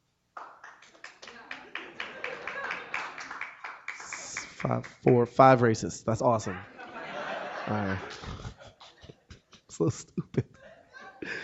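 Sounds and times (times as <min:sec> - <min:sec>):
audience applause: 0:00.4 - 0:04.9
laughter: 0:01.3 - 0:03.5, 0:06.3 - 0:11.4
speech: 0:04.6 - 0:06.7, 0:07.7 - 0:08.6, 0:09.8 - 0:10.5.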